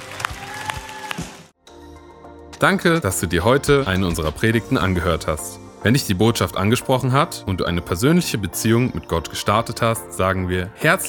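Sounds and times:
audience applause: 0:00.0 - 0:01.5
speech: 0:02.6 - 0:11.0.

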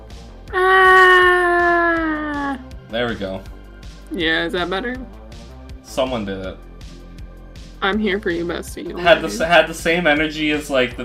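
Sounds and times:
person screaming: 0:00.5 - 0:02.6
speech: 0:03.1 - 0:05.2, 0:05.9 - 0:06.7, 0:07.8 - 0:11.0.

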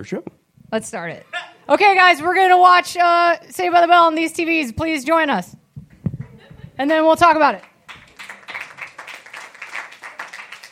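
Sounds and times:
speech: 0:00.0 - 0:05.6, 0:06.8 - 0:07.7
audience applauding: 0:07.6 - 0:10.7.

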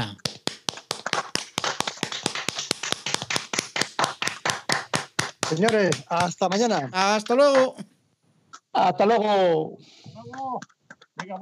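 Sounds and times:
applause for healthcare workers: 0:00.0 - 0:07.8, 0:10.3 - 0:11.3
speech: 0:05.5 - 0:07.9, 0:08.8 - 0:10.7.

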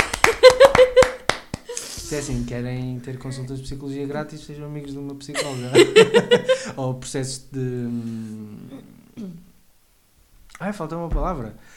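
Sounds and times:
applause, hands clapping: 0:00.0 - 0:01.8
laughter: 0:00.3 - 0:01.2, 0:05.4 - 0:06.7
speech: 0:02.1 - 0:08.8, 0:10.6 - 0:11.7.

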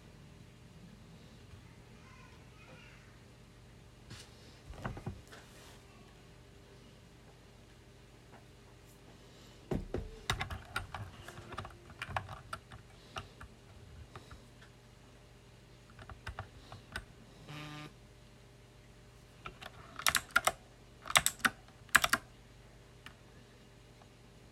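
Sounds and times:
steady low hum: 0:00.0 - 0:24.5
keystrokes on a loud mechanical keyboard: 0:10.2 - 0:13.5, 0:15.9 - 0:17.1, 0:19.5 - 0:22.3.

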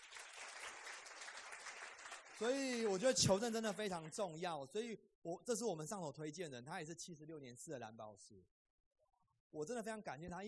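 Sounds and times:
audience applause: 0:00.0 - 0:03.2
speech: 0:02.4 - 0:08.6, 0:09.5 - 0:10.4.

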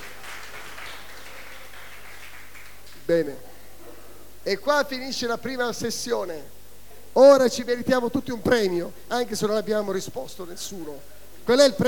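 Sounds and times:
audience applauding: 0:00.0 - 0:03.1
speech: 0:03.1 - 0:03.5, 0:04.4 - 0:06.6, 0:07.2 - 0:11.8.

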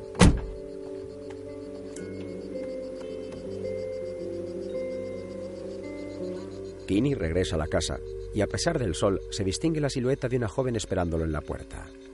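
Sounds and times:
soft sustained musical tones: 0:00.0 - 0:12.1
heavy car door thunk as a man gets out of a car: 0:00.1 - 0:00.7
speech: 0:06.9 - 0:12.0.

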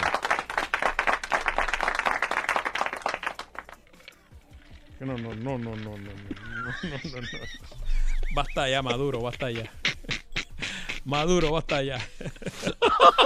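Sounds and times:
burst of dense rapid applause: 0:00.0 - 0:03.9
speech: 0:05.0 - 0:09.8, 0:11.1 - 0:13.2
laughter: 0:06.3 - 0:13.2.

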